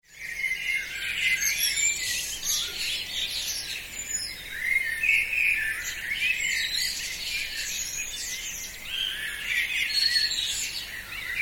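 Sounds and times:
birds in a dawn chorus: 0.0 - 11.4.

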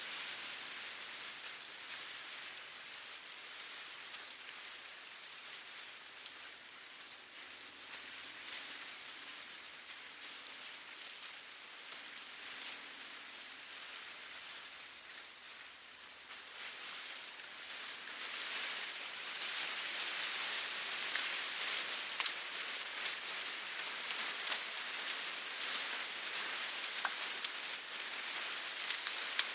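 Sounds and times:
medium leaves moved by wind rustling: 0.0 - 29.5
medium leaves snapping: 19.8 - 29.5.

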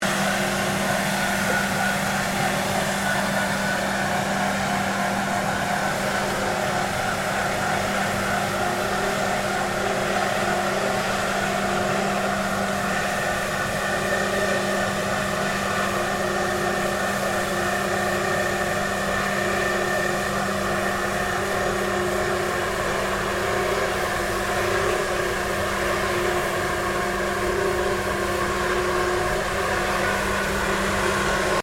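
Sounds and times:
Hakomatic B70Cl gas powered floor polisher maneuvering: 0.0 - 31.6.

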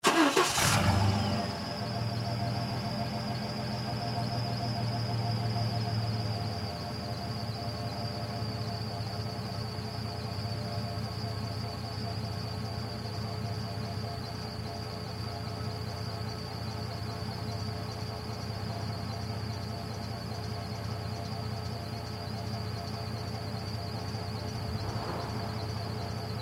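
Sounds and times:
1996 Chevy Blazer engine starting: 0.0 - 26.3.

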